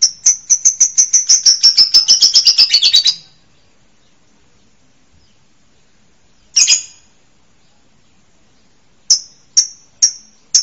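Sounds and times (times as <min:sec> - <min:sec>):
songbird rattling trills of high bright notes: 0:00.0 - 0:03.4, 0:06.5 - 0:07.1, 0:09.0 - 0:10.6.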